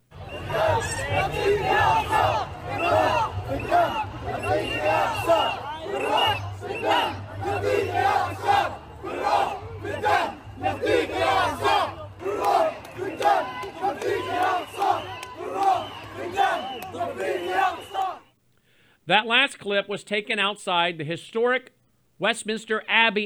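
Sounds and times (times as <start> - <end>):
large crowd chanting in Arabic: 0.1 - 18.3
speech: 19.1 - 23.2.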